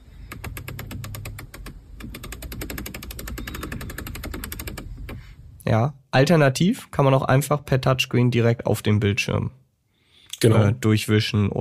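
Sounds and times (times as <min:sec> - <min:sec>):
car center console rotary controller clicking: 0:00.2 - 0:05.2
speech: 0:05.7 - 0:09.6, 0:10.4 - 0:11.5.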